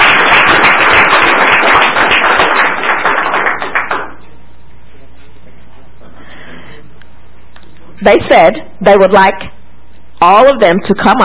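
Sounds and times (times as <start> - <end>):
audience hand clapping: 0.0 - 4.3
speech: 8.0 - 9.6, 10.2 - 11.2.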